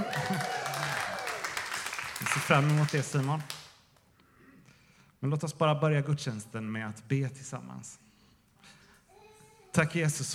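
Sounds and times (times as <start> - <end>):
audience cheering and applauding: 0.0 - 3.6
speech: 2.3 - 3.6, 5.2 - 8.8, 9.8 - 10.3.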